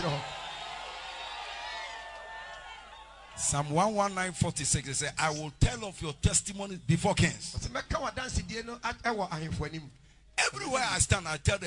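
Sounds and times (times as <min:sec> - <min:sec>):
crowd screaming and shouting: 0:00.0 - 0:03.5
speech: 0:03.4 - 0:11.6.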